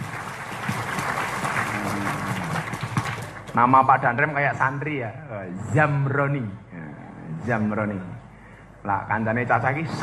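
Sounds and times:
audience applause: 0.0 - 3.6
speech: 3.6 - 6.6, 7.4 - 8.1, 8.8 - 10.0.

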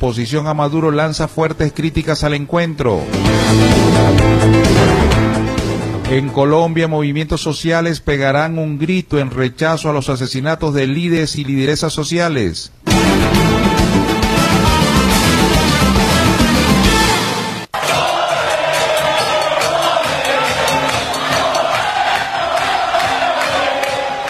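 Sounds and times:
speech: 0.0 - 5.3, 6.1 - 13.4
crowd celebrating in the streets of Puerto Rico: 3.2 - 6.1, 12.9 - 24.2.

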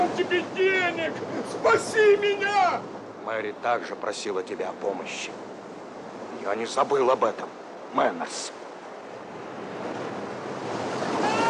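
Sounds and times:
stormy sea waves crashing: 0.0 - 11.4
speech: 1.6 - 5.5, 6.4 - 8.6.

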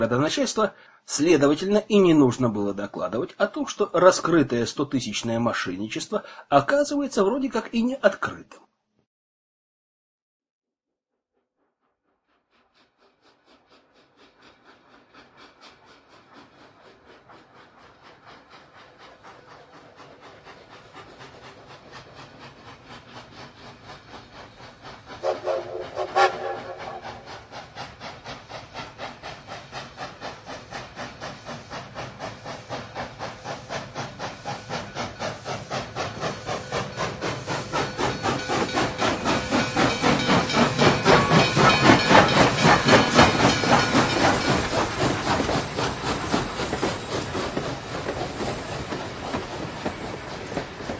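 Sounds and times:
Petersburg–Revel passenger train chugging away from the Baltic Station: 0.0 - 8.4, 12.2 - 50.9
speech: 0.0 - 8.7
sharp hissing burst of steam from passenger train: 12.8 - 50.9.

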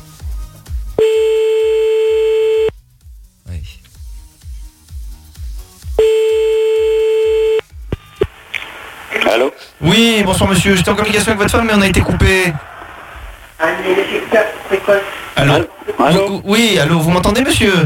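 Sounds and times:
odd electronic telephone ringing tone: 1.0 - 2.7, 6.0 - 7.6
short beeps: 1.0 - 2.7, 6.0 - 7.6
speech: 9.4 - 12.7, 13.6 - 17.8.

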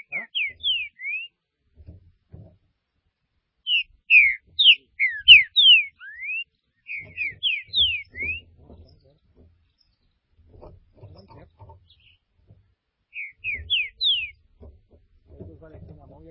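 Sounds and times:
green-winged saltator whistling: 3.7 - 8.5, 13.1 - 14.4.

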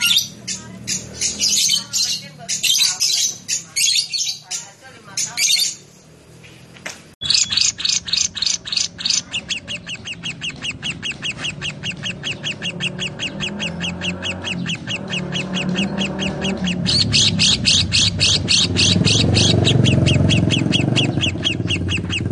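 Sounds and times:
lovebird chattering: 0.0 - 6.1, 7.2 - 22.3.

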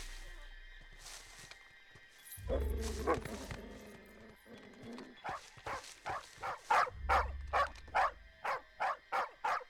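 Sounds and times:
dog barking: 2.5 - 3.6, 5.2 - 9.6.

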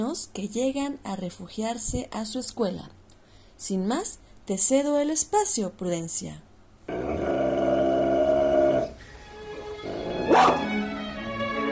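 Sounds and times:
speech: 0.0 - 3.0, 3.6 - 6.5
dogs barking and growling: 6.9 - 9.0, 9.6 - 10.8.

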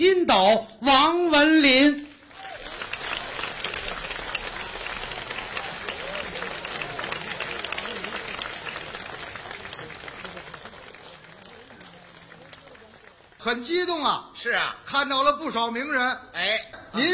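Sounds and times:
speech: 0.0 - 2.1, 13.4 - 17.1
faint murmur of voices: 2.0 - 17.1
large audience applause: 2.1 - 13.8.

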